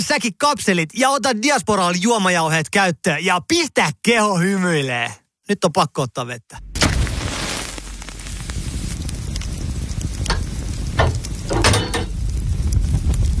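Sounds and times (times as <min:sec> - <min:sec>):
speech: 0:00.0 - 0:06.7
wood fire crackling in a sauna stove: 0:06.6 - 0:13.3.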